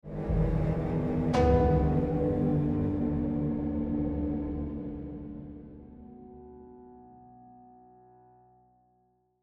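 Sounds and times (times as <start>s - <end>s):
tension music: 0.0s - 7.0s.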